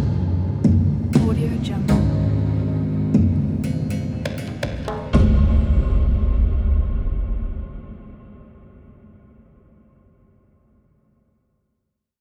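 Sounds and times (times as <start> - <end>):
cinematic detective music: 0.0 - 9.3.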